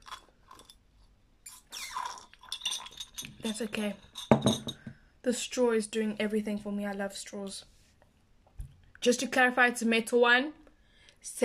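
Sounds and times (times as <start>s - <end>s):
ice being chewed: 0.0s - 3.5s
speech: 3.4s - 4.6s, 5.2s - 7.7s, 9.0s - 10.6s, 11.2s - 11.4s.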